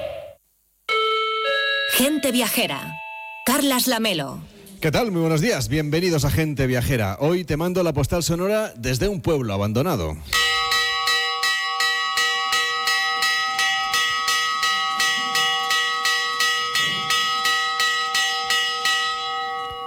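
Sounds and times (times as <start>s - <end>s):
church bell ringing for gate closing: 0.9s - 4.3s, 10.3s - 19.8s
speech: 2.0s - 10.6s.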